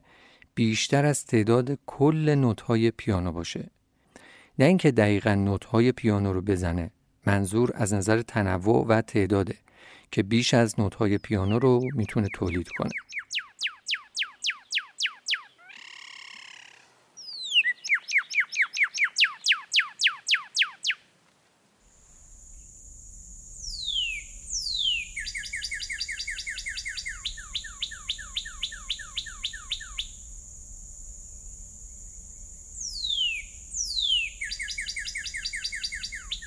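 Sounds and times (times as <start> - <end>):
speech: 0.6 - 3.8, 4.6 - 13.2
rapid high-pitched bird song with trills and chirps: 11.0 - 21.0, 22.5 - 30.7, 32.0 - 36.4.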